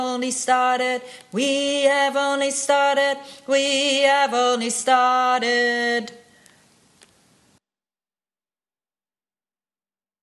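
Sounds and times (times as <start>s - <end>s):
tenor singing: 0.0s - 6.3s.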